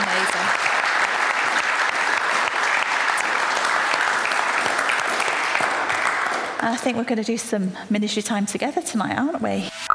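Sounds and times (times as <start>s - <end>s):
audience applause: 0.0s - 6.6s
speech: 6.7s - 9.8s.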